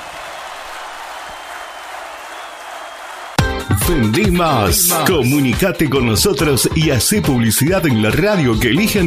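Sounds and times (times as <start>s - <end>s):
audience applause: 0.0s - 3.4s
speech: 3.7s - 9.0s.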